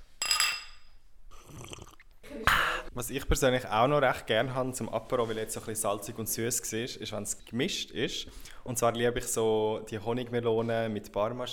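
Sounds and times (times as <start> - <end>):
glasses clinking in a toast: 0.0 - 1.0
speech: 3.0 - 11.5.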